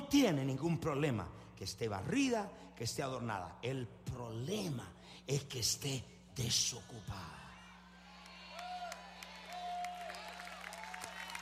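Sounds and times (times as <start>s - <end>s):
speech: 0.1s - 7.4s
audience applause: 8.2s - 11.4s.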